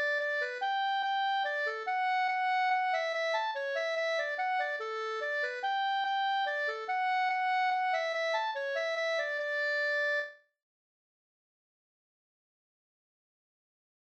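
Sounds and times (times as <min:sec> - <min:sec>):
mazurka: 0:00.0 - 0:10.4.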